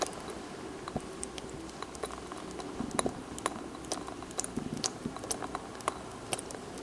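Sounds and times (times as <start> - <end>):
dripping water tap: 0.0 - 6.8.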